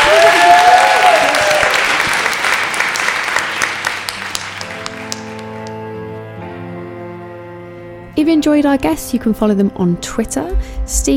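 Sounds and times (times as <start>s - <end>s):
audience round of applause: 0.0s - 5.8s
speech: 8.4s - 11.1s.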